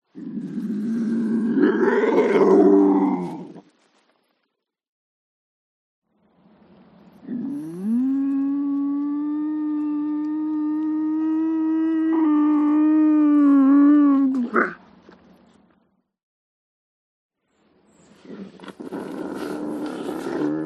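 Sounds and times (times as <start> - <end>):
lynx growling: 0.1 - 3.6, 7.2 - 14.8, 18.3 - 20.6.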